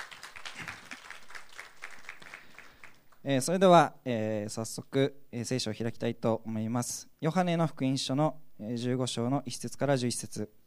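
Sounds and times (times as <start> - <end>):
audience applause: 0.0 - 3.2
speech: 3.2 - 10.6.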